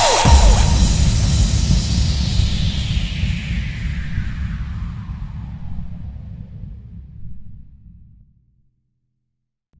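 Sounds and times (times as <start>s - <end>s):
slowed reverb remix: 0.0s - 7.0s.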